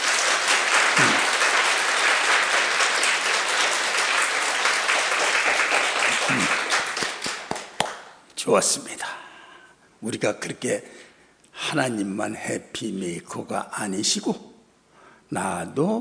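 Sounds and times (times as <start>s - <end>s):
audience applause: 0.0s - 8.1s
speech: 8.5s - 9.2s, 10.0s - 11.0s, 11.6s - 14.5s, 15.3s - 16.0s.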